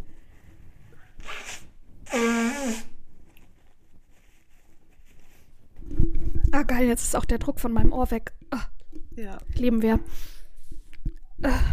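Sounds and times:
person blowing nose: 1.2s - 3.0s
speech: 6.6s - 10.4s, 11.4s - 11.7s.

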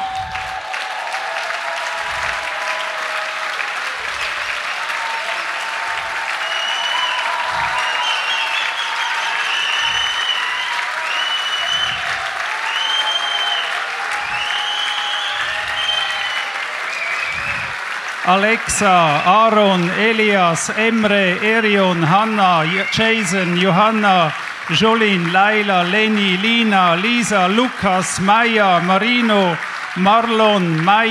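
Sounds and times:
audience applause: 0.0s - 31.0s
speech: 18.3s - 31.0s.

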